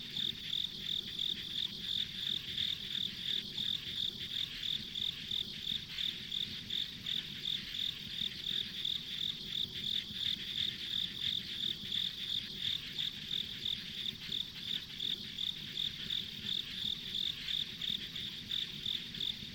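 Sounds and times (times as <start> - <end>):
insects chirping in a pulsed chorus: 0.0 - 19.5.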